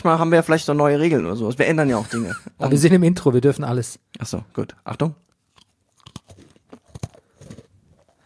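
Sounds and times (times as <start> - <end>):
speech: 0.0 - 5.2
biting into and crunching a cookie: 5.2 - 8.2.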